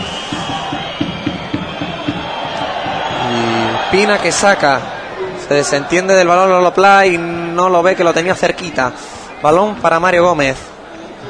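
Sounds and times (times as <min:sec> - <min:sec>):
rhythmic chanting or stamping beats of football crowd: 0:00.0 - 0:03.2
football stadium crowd protesting a referee's decision: 0:00.0 - 0:11.2
speech: 0:03.9 - 0:04.9, 0:05.5 - 0:10.7.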